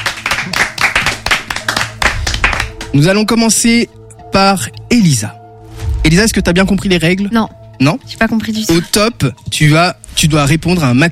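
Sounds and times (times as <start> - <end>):
audience applause: 0.0 - 2.9
speech: 2.9 - 5.4, 6.0 - 11.0.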